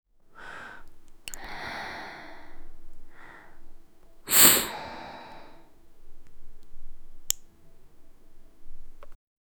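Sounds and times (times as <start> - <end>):
smoking sounds: 0.0 - 9.2.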